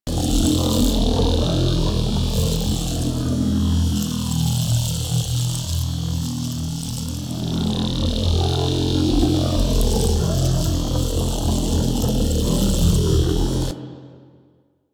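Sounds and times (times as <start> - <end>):
buzzing drive loop: 0.0 - 13.7.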